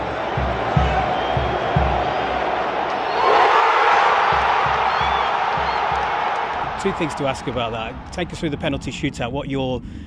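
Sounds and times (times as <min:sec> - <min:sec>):
football fans cheering in stadium: 0:00.0 - 0:08.6
rhythmic low thumping: 0:00.0 - 0:08.7
speech: 0:06.8 - 0:10.0.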